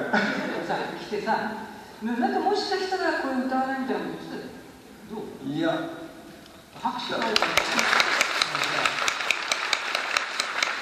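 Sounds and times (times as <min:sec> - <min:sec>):
speech: 0:00.1 - 0:06.0, 0:06.8 - 0:08.8
applause of many hands clapping: 0:07.0 - 0:10.8.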